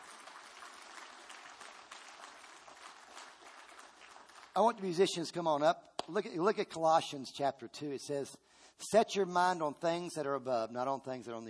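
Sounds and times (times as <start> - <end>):
audience applause: 0.0 - 4.8
speech: 4.6 - 11.4.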